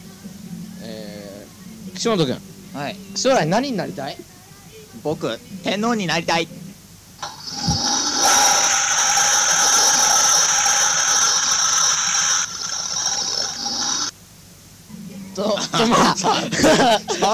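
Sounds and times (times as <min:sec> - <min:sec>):
speech: 0:02.0 - 0:04.3, 0:05.0 - 0:06.6, 0:15.4 - 0:17.3
toilet flushing: 0:07.2 - 0:14.1
toilet water gurgling: 0:07.3 - 0:14.1
laughter: 0:15.4 - 0:17.3.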